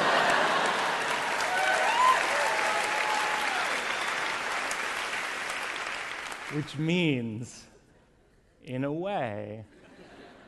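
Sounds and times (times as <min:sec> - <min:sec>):
audience applause: 0:00.0 - 0:06.7
speech: 0:06.5 - 0:07.7, 0:08.7 - 0:09.8.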